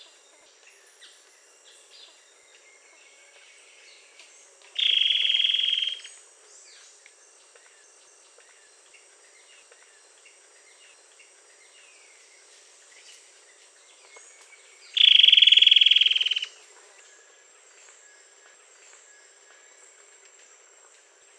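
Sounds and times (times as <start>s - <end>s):
faint background hiss: 0.0s - 21.3s
bird trill: 4.8s - 6.1s, 14.9s - 16.5s.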